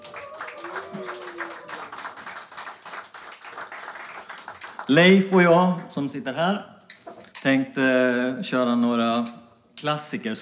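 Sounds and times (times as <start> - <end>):
audience applause: 0.0 - 5.6
speech: 4.9 - 6.7, 7.4 - 10.3.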